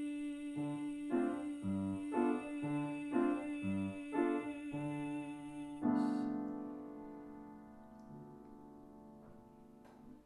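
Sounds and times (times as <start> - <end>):
alto voice singing a four-part choral piece: 0.0 - 6.6.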